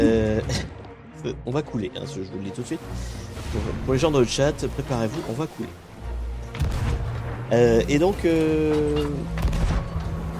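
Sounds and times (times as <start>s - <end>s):
speech: 0.5s - 5.9s, 7.5s - 9.4s
video game cannon fire: 6.6s - 7.4s, 9.4s - 10.0s.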